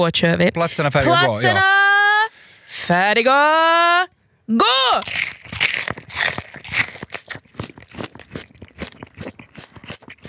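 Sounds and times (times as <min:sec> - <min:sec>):
speech: 0:00.0 - 0:01.8, 0:02.8 - 0:05.6
person crunching and chewing a raw onion during an eating contest: 0:04.9 - 0:10.2.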